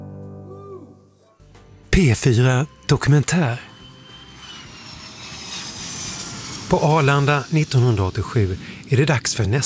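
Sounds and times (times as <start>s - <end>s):
speech: 2.0s - 3.7s, 6.7s - 9.6s
airplane engine roar of a plane landing at Arlanda airport: 2.3s - 9.6s.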